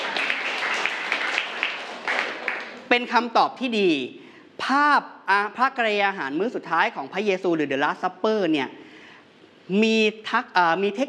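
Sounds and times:
audience applause: 0:00.0 - 0:02.9
speech: 0:02.9 - 0:08.8, 0:09.7 - 0:11.0.

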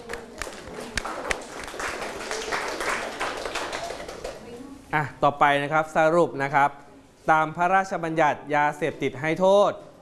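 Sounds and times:
group clapping hands: 0:00.0 - 0:04.5
speech: 0:04.9 - 0:09.9.

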